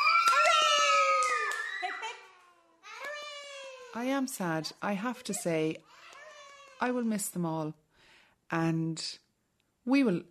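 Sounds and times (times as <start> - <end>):
group giving three cheers: 0.0 - 3.9
speech: 4.0 - 6.0, 6.8 - 7.8, 8.5 - 9.2, 9.8 - 10.2.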